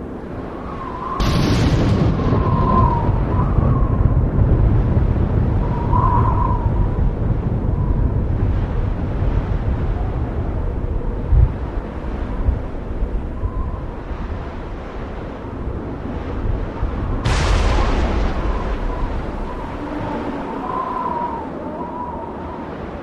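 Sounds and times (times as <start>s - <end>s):
wind during a storm: 0.0s - 23.0s
thunder during a storm: 1.2s - 8.0s, 17.1s - 21.6s.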